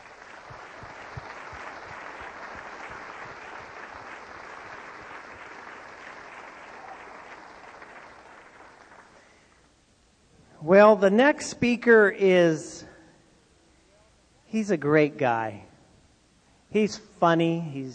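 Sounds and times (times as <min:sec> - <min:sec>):
crowd applause: 0:00.0 - 0:09.6
speech: 0:10.6 - 0:12.9, 0:14.5 - 0:15.7, 0:16.7 - 0:17.9.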